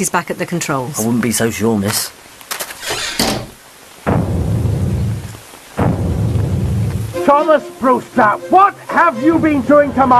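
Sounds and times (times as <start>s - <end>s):
speech: 0.0s - 2.3s, 7.3s - 10.1s
rain: 0.0s - 10.1s
thunder: 4.1s - 7.1s.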